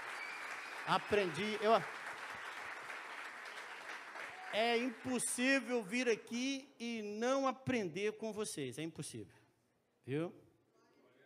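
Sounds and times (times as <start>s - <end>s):
applause: 0.0s - 5.9s
speech: 0.9s - 2.0s, 4.5s - 9.4s, 10.1s - 10.5s.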